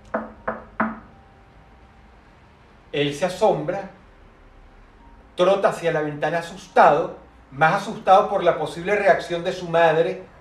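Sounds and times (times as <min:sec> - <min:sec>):
sharp knocks on a door: 0:00.1 - 0:01.1
speech: 0:02.9 - 0:04.0, 0:05.4 - 0:10.3.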